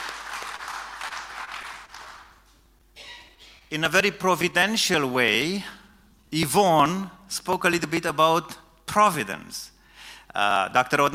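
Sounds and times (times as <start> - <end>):
audience applause welcoming a guest speaker: 0.0 - 2.4
speech: 3.7 - 9.7, 10.3 - 11.1.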